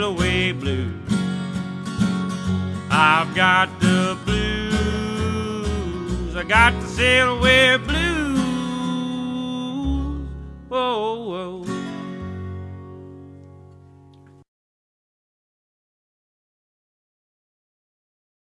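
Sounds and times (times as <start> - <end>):
blues music: 0.0 - 14.4.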